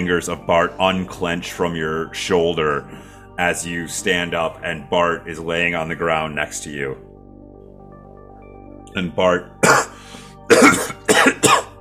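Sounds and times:
speech: 0.0s - 7.1s, 9.0s - 9.8s
person hacking up blood: 9.6s - 11.7s.

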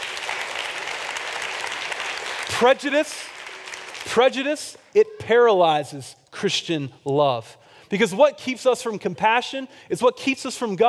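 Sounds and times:
audience applause: 0.0s - 4.2s
speech: 2.5s - 3.4s, 4.0s - 10.8s.

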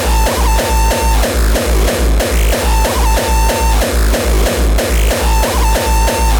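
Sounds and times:
heavily distorted drum machine beat: 0.0s - 6.3s
pitched synth tone in a repeating loop: 0.0s - 6.3s.

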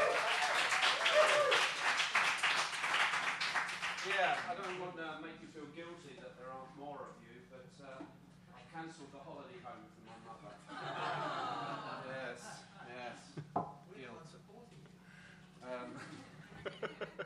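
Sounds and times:
audience applause for the panel: 0.0s - 4.8s
laughter: 10.6s - 12.9s, 15.8s - 17.2s.

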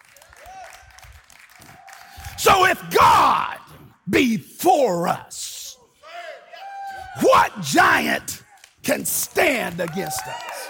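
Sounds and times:
audience clapping: 0.0s - 2.8s, 8.4s - 10.6s
speech: 2.4s - 5.5s, 7.2s - 10.5s.

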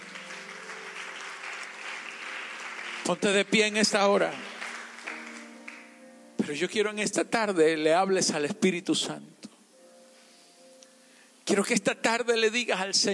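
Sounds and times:
audience applause: 0.0s - 5.9s
speech: 3.1s - 4.5s, 6.5s - 9.4s, 11.5s - 13.1s.

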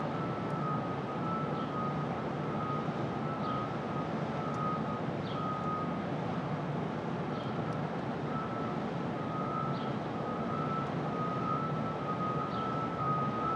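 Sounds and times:
street traffic roar at dawn: 0.0s - 13.5s.

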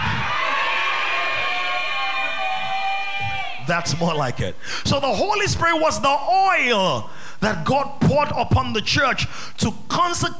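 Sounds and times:
audience shouting together: 0.0s - 3.9s
speech: 3.7s - 10.3s.

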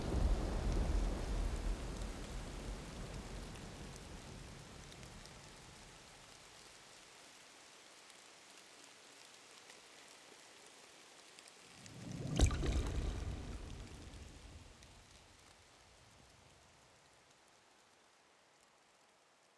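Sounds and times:
thunder: 0.0s - 3.8s, 11.9s - 15.0s
rain falling through a night forest: 0.0s - 19.5s.

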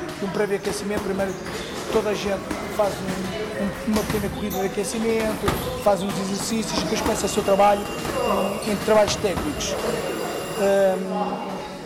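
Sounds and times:
speech: 0.2s - 11.5s
boxing gym round timer bell ringing: 6.8s - 11.3s.

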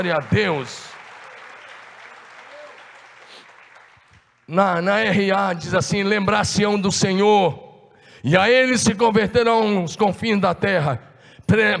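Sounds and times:
speech: 0.0s - 1.0s, 4.5s - 7.6s, 8.2s - 11.7s
audience applause: 0.0s - 4.5s.

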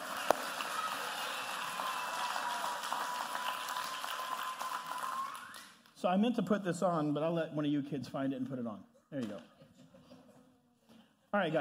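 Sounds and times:
round of applause from a group: 0.0s - 6.0s
speech: 6.0s - 9.5s, 11.3s - 11.5s.

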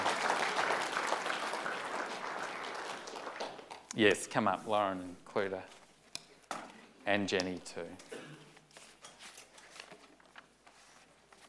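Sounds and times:
audience applause: 0.0s - 3.8s
speech: 4.0s - 5.8s, 7.1s - 8.2s.

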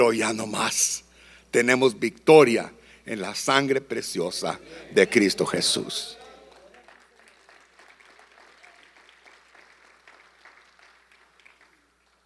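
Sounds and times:
speech: 0.0s - 6.2s
weak audience applause: 4.8s - 12.2s.

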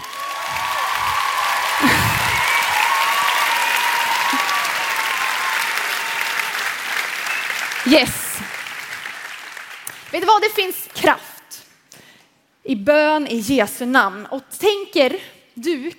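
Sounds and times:
whoops: 0.0s - 6.8s
crowd applauding: 0.0s - 10.3s
speech: 7.9s - 8.2s, 10.2s - 11.3s, 12.7s - 15.9s.

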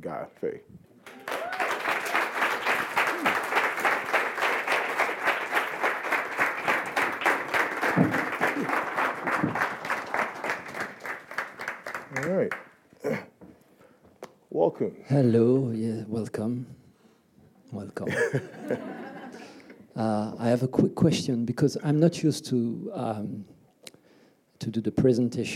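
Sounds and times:
speech: 0.0s - 0.9s, 14.8s - 16.8s, 17.7s - 19.0s, 20.0s - 23.6s, 24.6s - 25.5s
audience applause: 1.0s - 12.7s
short burst of claps: 1.0s - 12.8s
laughter: 18.1s - 19.8s.

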